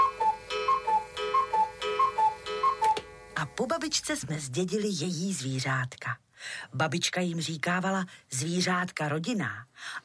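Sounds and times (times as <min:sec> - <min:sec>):
cuckoo clock ticking: 0:00.0 - 0:03.1
speech: 0:03.6 - 0:10.0.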